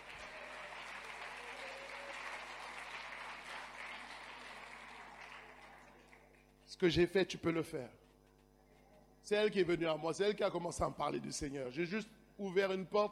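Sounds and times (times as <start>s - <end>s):
audience applauding: 0.0s - 6.5s
speech: 6.7s - 8.0s, 9.3s - 13.1s.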